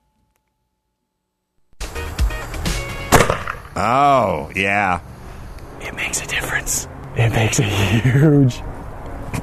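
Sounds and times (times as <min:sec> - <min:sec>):
homemade cannon firing a tennis ball: 0:03.1 - 0:03.7
sharp crack: 0:03.1 - 0:03.8
speech: 0:03.8 - 0:05.1, 0:05.8 - 0:08.7.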